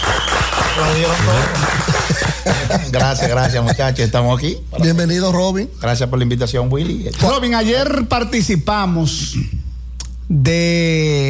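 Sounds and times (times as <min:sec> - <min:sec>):
audience applause: 0:00.0 - 0:03.0
speech: 0:00.8 - 0:09.6, 0:10.3 - 0:11.2
laughter: 0:00.9 - 0:04.2.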